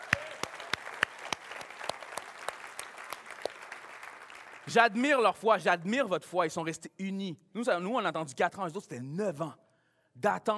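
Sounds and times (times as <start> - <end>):
audience applause: 0.0 - 4.8
speech: 4.7 - 9.6, 10.2 - 10.5.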